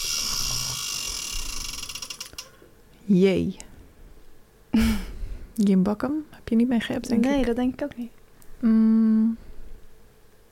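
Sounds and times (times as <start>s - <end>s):
spinning game wheel clicking: 1.1s - 2.5s
speech: 3.1s - 3.7s, 4.8s - 9.4s.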